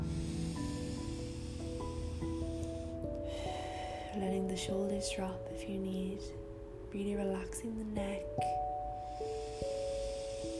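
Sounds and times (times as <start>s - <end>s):
long forceful exhale during a guided breathing exercise in a meditation: 0.0s - 4.2s, 9.0s - 10.5s
soft sustained music notes: 0.0s - 10.5s
speech: 4.2s - 9.3s.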